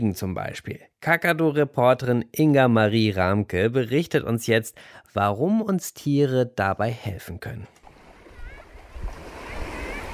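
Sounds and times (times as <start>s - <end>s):
speech: 0.0s - 7.8s
sea waves washing onto a beach: 7.8s - 10.1s.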